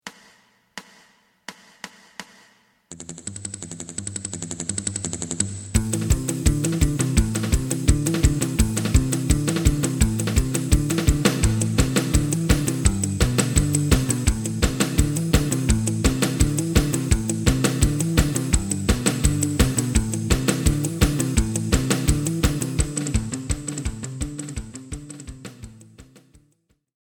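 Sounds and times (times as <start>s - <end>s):
lead melody: 5.8s - 25.5s.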